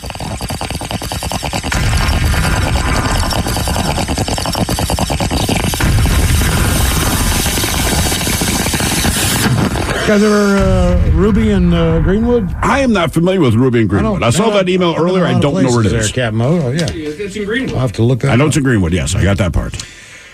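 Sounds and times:
harsh bubbling bong rip: 0:00.0 - 0:14.5
beat drop with rapid rhythmic thumping: 0:01.4 - 0:14.4
booming roaring explosion: 0:01.7 - 0:14.4
speech: 0:10.1 - 0:20.0.

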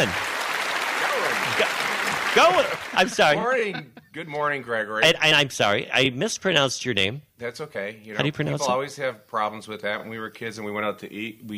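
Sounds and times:
speech: 0:00.0 - 0:00.2, 0:01.5 - 0:11.5
audience applause: 0:00.0 - 0:03.7
faint voices and cheers: 0:00.9 - 0:03.2
laughter: 0:01.1 - 0:04.4.

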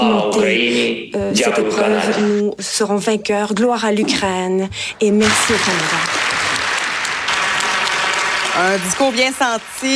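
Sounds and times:
speech: 0:00.3 - 0:06.2, 0:08.6 - 0:09.9
long standing ovation applause: 0:05.2 - 0:09.9.

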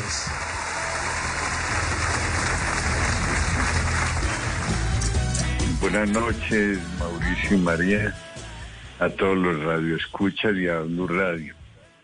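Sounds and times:
loud applause welcoming a guest: 0:00.0 - 0:06.1
speech: 0:05.9 - 0:08.3, 0:09.0 - 0:11.6.

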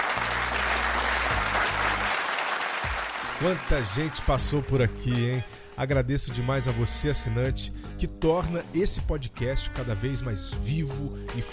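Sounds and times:
audience applause: 0:00.0 - 0:04.5
speech: 0:03.4 - 0:11.5.

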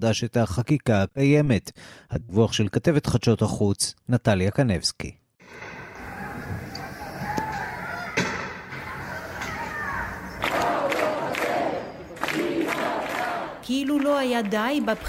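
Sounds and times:
speech: 0:00.0 - 0:05.6, 0:13.7 - 0:15.0
street protest in Barcelona: 0:05.6 - 0:15.0.

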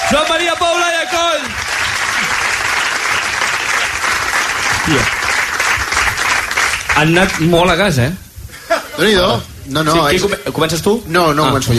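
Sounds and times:
voice or cheer: 0:00.0 - 0:01.6
audience applause: 0:00.0 - 0:07.6
speech: 0:00.1 - 0:01.6, 0:04.9 - 0:05.2, 0:07.0 - 0:08.2, 0:09.0 - 0:11.7.

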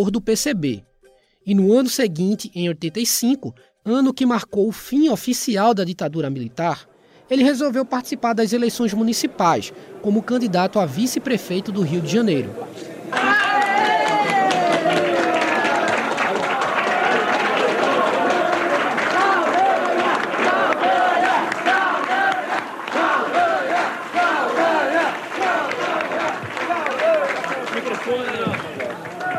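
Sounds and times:
speech: 0:00.0 - 0:13.5
large crowd shouting enthusiastically at a party convention: 0:13.1 - 0:29.3.

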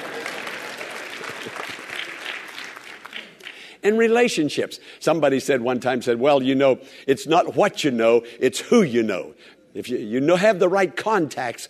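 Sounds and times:
audience clapping: 0:00.0 - 0:03.7
speech: 0:03.8 - 0:11.6.

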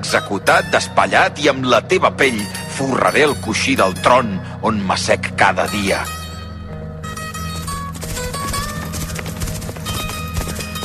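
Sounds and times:
speech: 0:00.0 - 0:06.2
horses galloping: 0:07.1 - 0:10.8.

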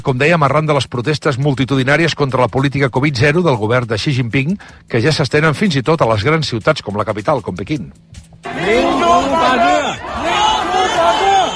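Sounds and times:
speech: 0:00.0 - 0:10.1
shouts of hundreds of street protesters: 0:08.4 - 0:11.5.

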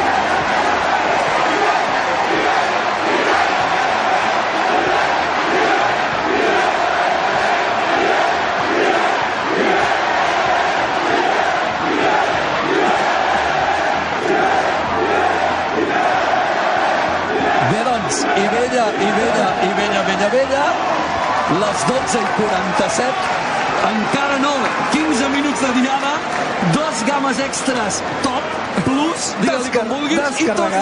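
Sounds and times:
crowd chanting: 0:00.0 - 0:26.8
crowd celebrating, cheering and shouting: 0:00.0 - 0:30.8
speech: 0:25.0 - 0:30.8.

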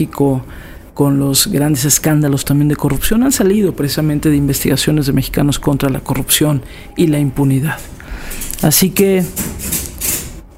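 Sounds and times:
speech: 0:00.0 - 0:09.9
dog walking down the stairs: 0:08.4 - 0:10.5.

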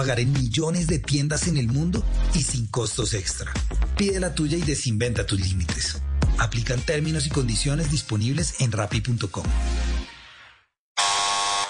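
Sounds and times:
speech: 0:00.0 - 0:10.0
doorbell buzzer ringing: 0:11.0 - 0:11.6.

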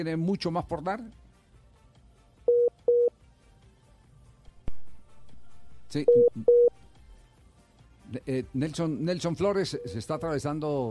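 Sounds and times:
speech: 0:00.0 - 0:01.2, 0:05.9 - 0:06.8, 0:08.1 - 0:10.8
telephone dialing beeps on a phone line: 0:02.5 - 0:03.1, 0:06.1 - 0:06.7, 0:09.8 - 0:10.3.

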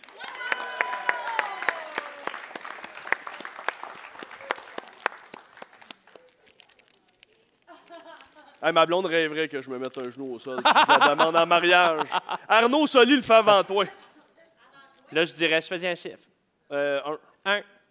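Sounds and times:
audience applause: 0:00.0 - 0:06.6
laughter: 0:07.7 - 0:08.7, 0:10.5 - 0:12.7
speech: 0:08.6 - 0:14.0, 0:15.1 - 0:17.7.

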